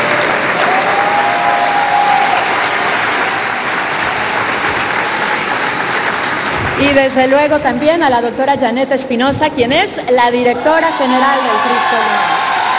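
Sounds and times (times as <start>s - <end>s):
audience applause: 0.0s - 7.6s, 10.8s - 12.7s
speech: 6.9s - 12.4s.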